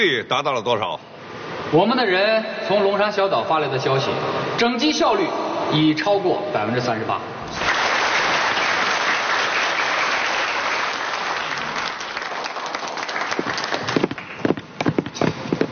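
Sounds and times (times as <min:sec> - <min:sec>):
speech: 0:00.0 - 0:01.1, 0:01.7 - 0:07.8
crowd applause: 0:07.5 - 0:14.5.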